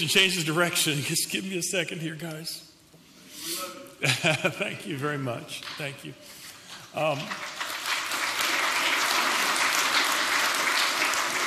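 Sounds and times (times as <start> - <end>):
speech: 0.0 - 2.7, 4.0 - 7.5
laughter: 4.0 - 5.1
crowd applause: 7.0 - 11.4.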